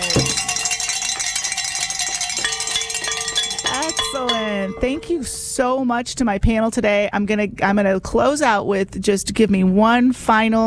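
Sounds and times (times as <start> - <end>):
hand bells being rung: 0.0 - 5.6
speech: 4.2 - 10.6.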